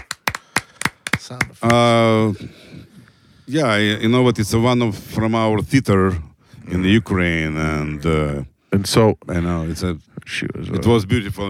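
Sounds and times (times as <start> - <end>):
hand claps: 0.0 - 2.0
speech: 1.3 - 11.4.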